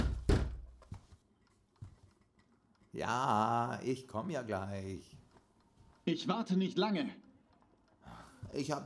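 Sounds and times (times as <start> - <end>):
police pounding on a wooden door: 0.0 - 0.7
speech: 3.0 - 5.2, 6.1 - 7.2, 8.1 - 8.8.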